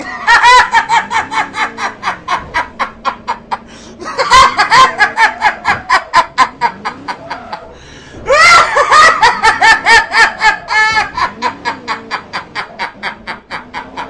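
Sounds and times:
laughing: 0:00.0 - 0:14.0.

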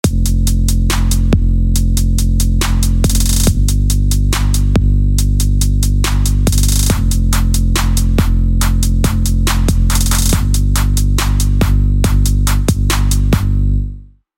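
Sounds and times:
trap beat: 0:00.0 - 0:13.8.

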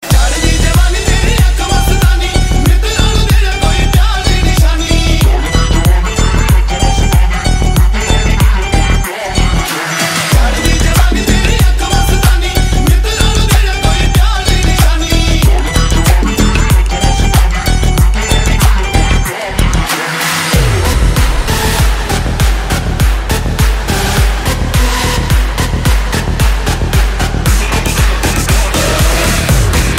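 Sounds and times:
Punjabi music original mix: 0:00.0 - 0:29.9.

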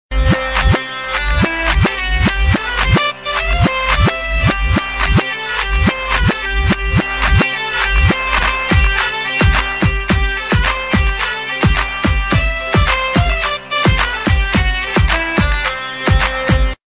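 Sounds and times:
bagpipes: 0:00.2 - 0:16.8.

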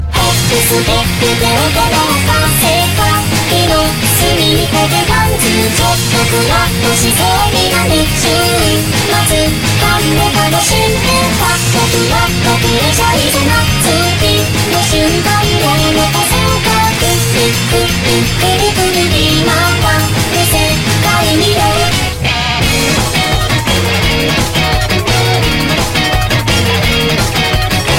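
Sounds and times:
dancehall music: 0:00.0 - 0:27.9.

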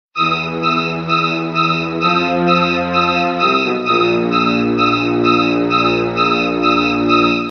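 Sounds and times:
scary ringtone: 0:00.2 - 0:07.5.

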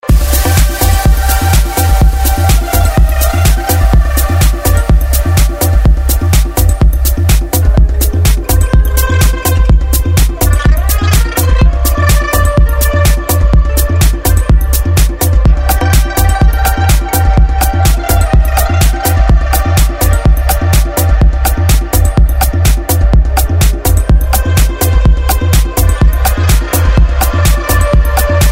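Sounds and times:
progressive house music: 0:00.0 - 0:28.5.

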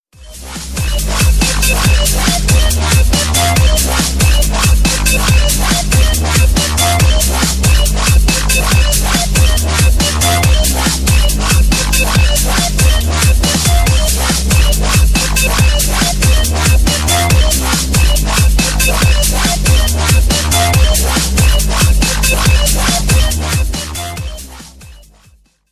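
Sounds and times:
breakbeat ringtone: 0:00.2 - 0:25.3.

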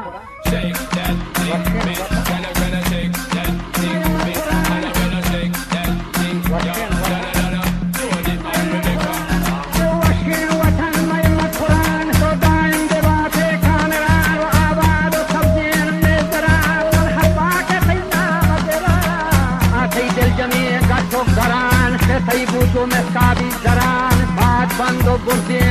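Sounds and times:
Balochi music remix: 0:00.3 - 0:25.6.

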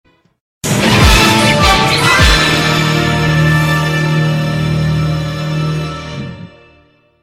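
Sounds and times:
victory fanfare: 0:00.6 - 0:07.0.

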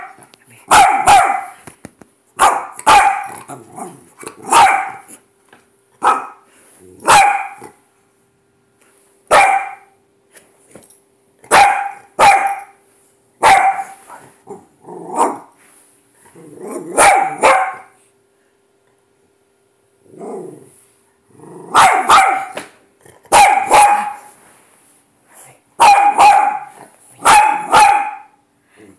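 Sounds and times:
Dachshund barking: 0:00.0 - 0:01.6, 0:02.4 - 0:03.4, 0:04.4 - 0:05.1, 0:06.0 - 0:06.4, 0:07.0 - 0:07.7, 0:09.3 - 0:09.9, 0:11.5 - 0:12.8, 0:13.4 - 0:14.0, 0:16.9 - 0:18.0, 0:21.7 - 0:22.6, 0:23.3 - 0:24.3, 0:25.8 - 0:28.4.

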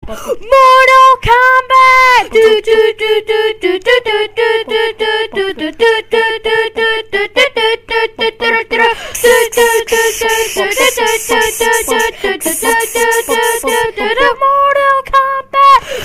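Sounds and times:
child singing: 0:00.4 - 0:15.8.

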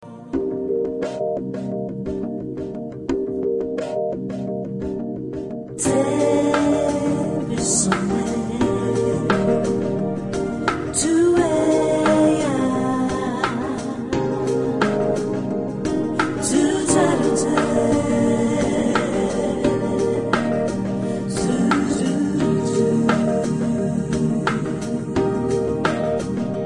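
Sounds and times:
romantic lounge music: 0:00.0 - 0:26.6.

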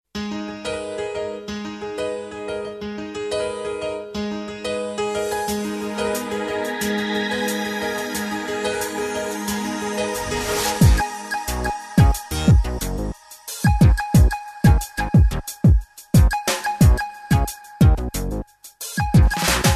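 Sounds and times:
electro music: 0:05.2 - 0:19.7.

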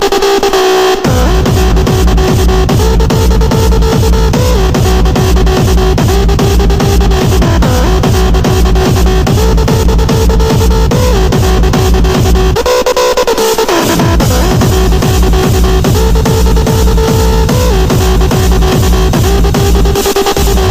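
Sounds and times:
hardstyle music: 0:00.0 - 0:20.6.

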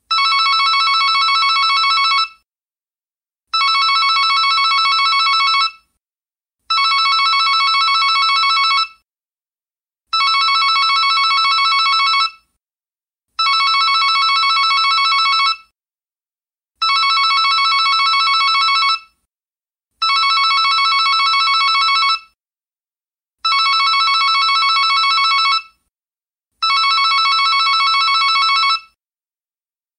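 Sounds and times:
digital ringtone: 0:00.1 - 0:02.4, 0:03.6 - 0:05.8, 0:06.7 - 0:09.0, 0:10.2 - 0:12.4, 0:13.4 - 0:15.7, 0:16.8 - 0:19.1, 0:20.0 - 0:22.3, 0:23.4 - 0:25.7, 0:26.6 - 0:29.0.

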